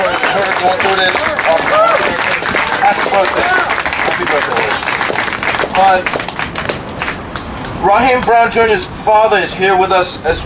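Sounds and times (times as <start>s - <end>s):
crowd applause at a rally: 0.0s - 7.2s
speech: 0.4s - 6.3s, 7.8s - 10.4s.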